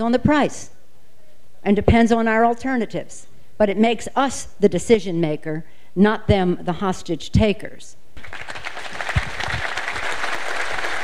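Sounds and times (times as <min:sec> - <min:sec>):
speech: 0:00.0 - 0:00.8, 0:01.6 - 0:08.6
crowd applauding Congresswoman Pelosi at a public event on energy policy: 0:08.2 - 0:11.0.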